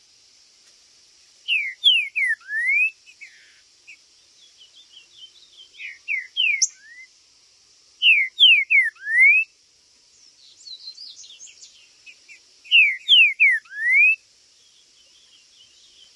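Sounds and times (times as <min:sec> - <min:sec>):
green-winged saltator whistling song: 0:01.4 - 0:03.5, 0:05.7 - 0:07.2, 0:08.0 - 0:09.6, 0:10.6 - 0:14.2.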